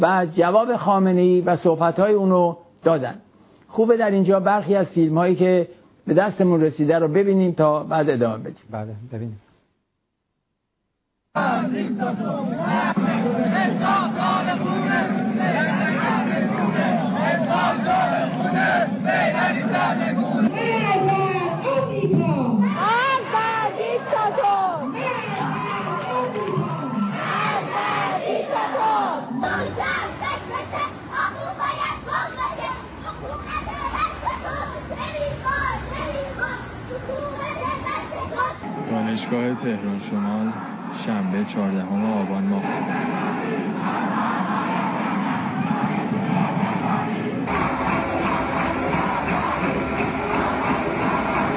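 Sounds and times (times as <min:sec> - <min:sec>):
speech: 0:00.0 - 0:09.4, 0:11.4 - 0:13.0, 0:39.2 - 0:44.6
protest crowd chanting slogans in street: 0:11.4 - 0:41.1, 0:41.9 - 0:51.5.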